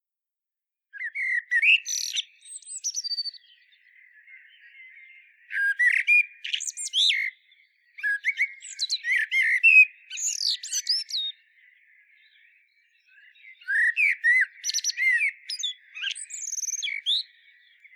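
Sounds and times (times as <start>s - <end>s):
common blackbird singing, Turdus merula: 0.9s - 17.9s.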